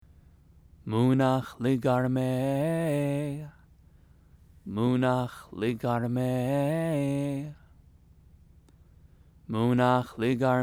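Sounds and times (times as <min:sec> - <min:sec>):
scripture chanting: 0:00.8 - 0:03.7, 0:04.6 - 0:07.8, 0:09.4 - 0:10.6.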